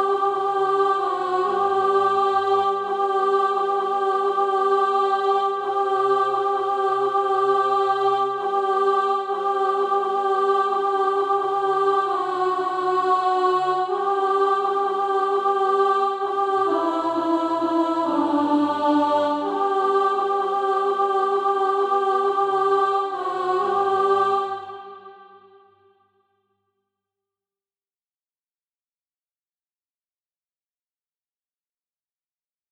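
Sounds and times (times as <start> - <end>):
alto voice singing SATB practice music: 0.0 - 25.7.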